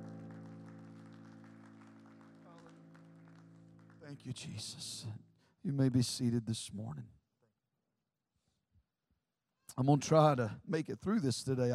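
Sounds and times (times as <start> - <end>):
sustained organ-like chord: 0.0 - 4.2
audience clapping: 0.0 - 4.8
speech: 4.0 - 7.2, 9.8 - 11.7.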